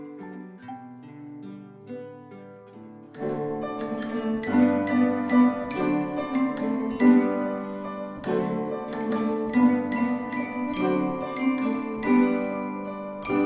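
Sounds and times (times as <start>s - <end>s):
children's orchestra playing: 3.2s - 13.4s.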